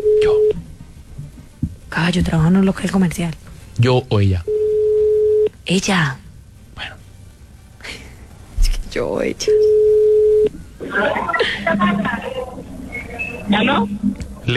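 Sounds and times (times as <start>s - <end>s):
speech: 2.0s - 4.5s, 5.7s - 6.2s, 6.8s - 7.0s, 9.0s - 9.8s, 11.0s - 12.3s, 13.5s - 14.5s
phone call ringing tone: 4.5s - 5.5s, 9.5s - 10.5s
laughter: 10.8s - 13.9s.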